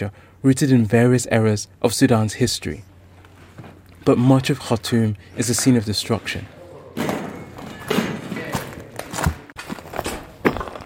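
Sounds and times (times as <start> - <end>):
speech: 0.0 - 2.9, 4.0 - 6.6
steady noisy background: 0.0 - 10.6
footsteps on broken concrete and glass: 8.7 - 10.8.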